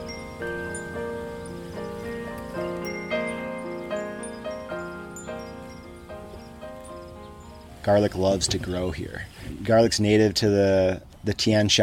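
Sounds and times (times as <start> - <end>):
wind chime ringing: 0.0 - 8.6
speech: 7.9 - 11.8.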